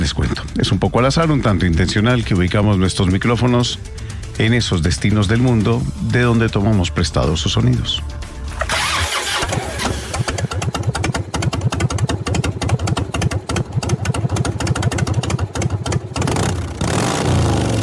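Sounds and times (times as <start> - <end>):
speech: 0.1 - 8.2
Harley-Davidson motorcycle engine firing up and revving: 8.5 - 17.8.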